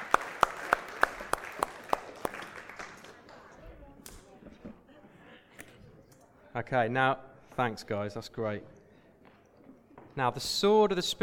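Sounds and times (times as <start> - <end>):
audience applause: 0.0 - 3.5
speech: 6.6 - 8.8, 10.2 - 11.2.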